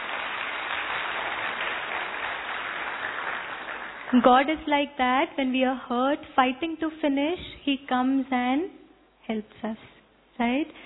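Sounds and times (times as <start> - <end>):
audience applause: 0.0 - 4.2
speech: 4.1 - 10.8.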